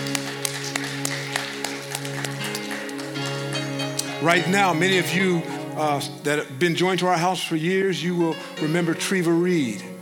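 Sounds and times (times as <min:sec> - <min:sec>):
person clapping alone: 0:00.0 - 0:04.2
sustained humming keyboard chord: 0:02.5 - 0:10.0
speech: 0:04.2 - 0:09.9.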